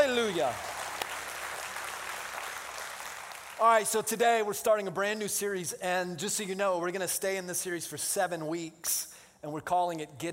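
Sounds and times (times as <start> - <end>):
audience clapping: 0.0 - 4.0
speech: 0.2 - 0.8, 3.6 - 10.3.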